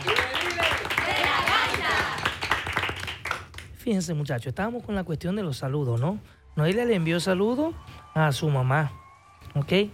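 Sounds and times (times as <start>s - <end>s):
group applauding: 0.0s - 3.8s, 7.8s - 9.9s
speech: 3.9s - 9.0s, 9.6s - 9.9s.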